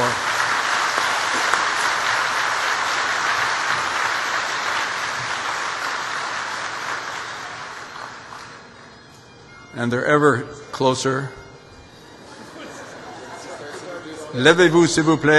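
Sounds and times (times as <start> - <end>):
audience applause: 0.0 - 8.9
speech: 9.8 - 11.4, 14.3 - 15.3
laughter: 12.1 - 14.4.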